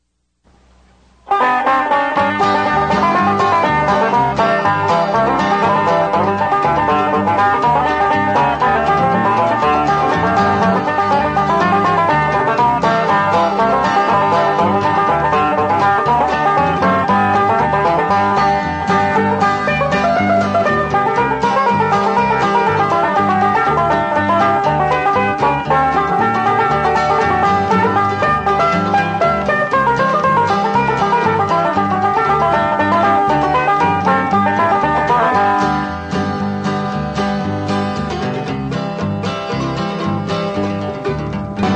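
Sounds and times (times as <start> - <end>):
banjo: 0.0 - 41.7.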